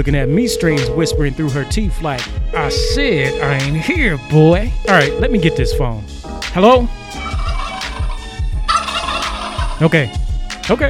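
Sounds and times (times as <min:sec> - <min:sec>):
speech: 0:00.0 - 0:07.3, 0:09.8 - 0:10.8
turkeys gobbling: 0:07.2 - 0:09.9.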